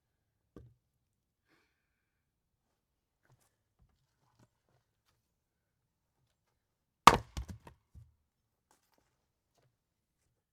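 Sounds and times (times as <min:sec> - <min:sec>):
splitting firewood: 0:07.1 - 0:07.7.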